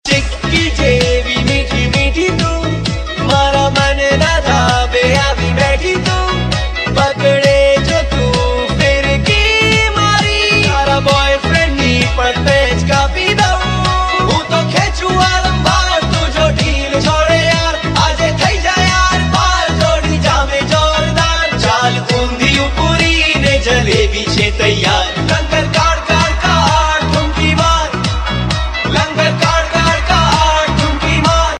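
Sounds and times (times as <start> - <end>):
Gujarati Utrayan song: 0.0 - 31.5.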